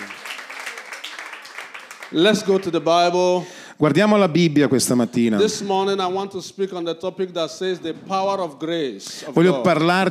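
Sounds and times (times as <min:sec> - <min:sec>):
crowd applauding: 0:00.0 - 0:02.9
speech: 0:02.1 - 0:10.0.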